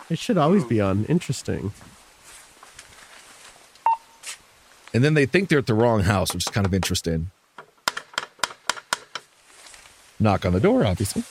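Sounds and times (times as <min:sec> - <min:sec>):
speech: 0:00.1 - 0:02.0, 0:05.0 - 0:07.4, 0:10.2 - 0:11.3
beep of microphone being switched on: 0:03.8 - 0:04.2.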